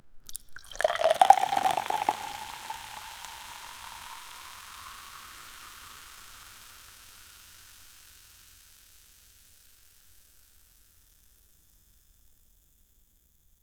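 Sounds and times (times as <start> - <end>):
cold prosecco pouring in a bar: 0.3 - 7.8.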